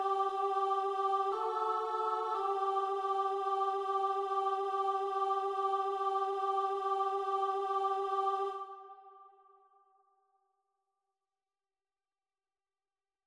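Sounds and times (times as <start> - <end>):
SATB choir singing: 0.0 - 9.5.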